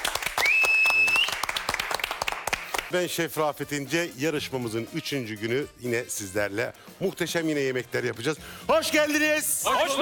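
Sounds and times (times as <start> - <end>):
cooking competition audience applause: 0.0 - 2.9
sustained high whistle tone: 0.4 - 1.4
speech: 2.9 - 9.9.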